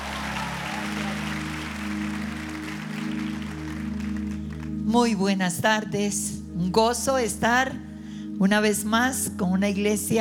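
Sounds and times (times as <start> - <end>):
audience applause: 0.0 - 4.8
speech: 4.9 - 10.1.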